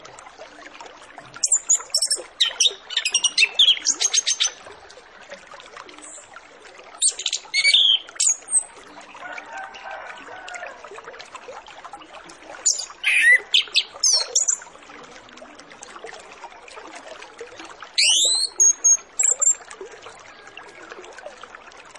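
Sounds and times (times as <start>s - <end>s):
orange-headed thrush song: 1.4s - 4.6s, 7.0s - 8.7s, 12.6s - 14.6s, 18.0s - 19.6s.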